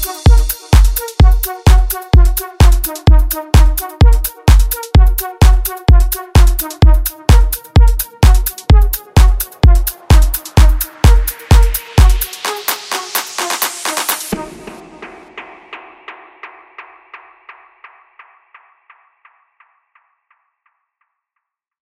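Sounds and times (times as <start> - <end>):
electro funk and sertanejo music: 0.0 - 17.2.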